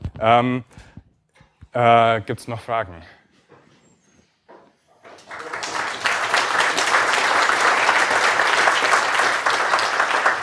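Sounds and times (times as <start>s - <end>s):
speech: 0.2s - 0.8s, 1.8s - 3.2s
audience applause: 5.0s - 10.4s.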